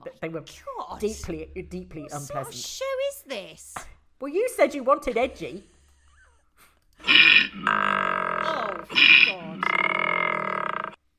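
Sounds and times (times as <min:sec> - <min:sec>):
speech: 0:00.2 - 0:05.7
loud snoring: 0:07.0 - 0:11.0.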